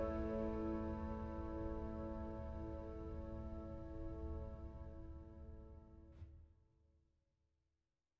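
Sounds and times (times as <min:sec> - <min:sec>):
baby lullaby piano sleep music: 0:00.0 - 0:06.0.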